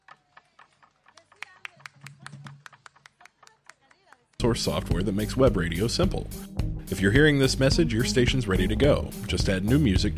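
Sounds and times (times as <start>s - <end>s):
applause for dancers at a chacarera folk dance event: 0.0s - 4.6s
speech: 4.4s - 10.1s.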